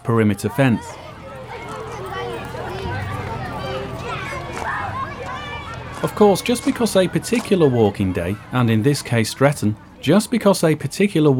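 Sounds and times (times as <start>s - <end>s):
speech: 0.0s - 1.1s, 6.0s - 11.3s
children running around and playing at a small fair: 0.2s - 10.8s.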